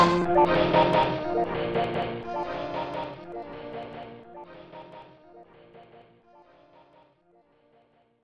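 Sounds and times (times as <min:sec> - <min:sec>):
haunted pipe organ: 0:00.0 - 0:05.4.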